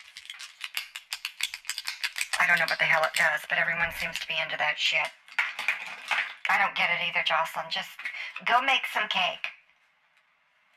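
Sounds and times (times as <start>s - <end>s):
ballpoint pens handled for ASMR clicking and rattling: 0.0s - 6.4s
speech: 2.4s - 5.2s, 6.5s - 9.5s.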